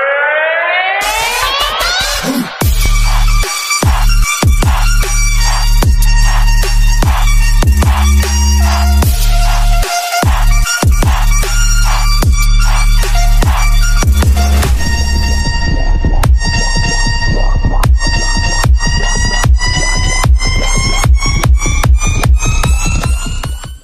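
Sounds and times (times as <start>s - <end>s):
military alarm music remix: 0.1s - 23.8s.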